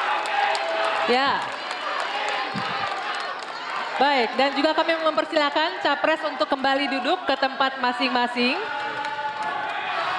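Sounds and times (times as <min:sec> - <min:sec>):
audience applause: 0:00.0 - 0:06.6, 0:08.5 - 0:10.1
crowd voices: 0:00.0 - 0:10.1
speech: 0:01.1 - 0:01.6, 0:02.5 - 0:02.8, 0:04.0 - 0:08.8.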